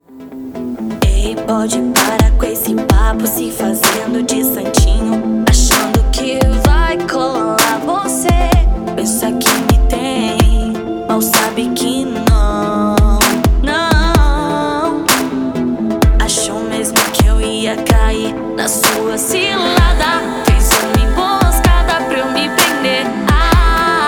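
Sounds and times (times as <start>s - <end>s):
funk music: 0.4s - 24.0s.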